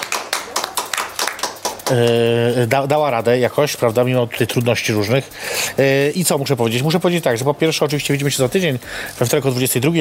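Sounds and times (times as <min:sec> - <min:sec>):
audience clapping: 0:00.0 - 0:02.4
speech: 0:01.9 - 0:10.0.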